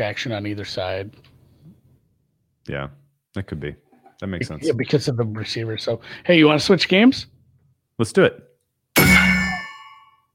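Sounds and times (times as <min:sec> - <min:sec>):
speech: 0:00.0 - 0:01.3, 0:02.6 - 0:07.3, 0:08.0 - 0:08.5
bang sound effect: 0:09.0 - 0:09.8.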